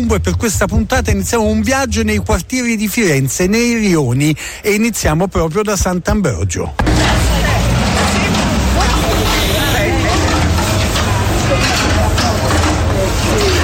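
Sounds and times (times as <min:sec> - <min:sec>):
speech: 0:00.0 - 0:07.0
construction works at the Sant'Ambrogio market: 0:06.7 - 0:13.6.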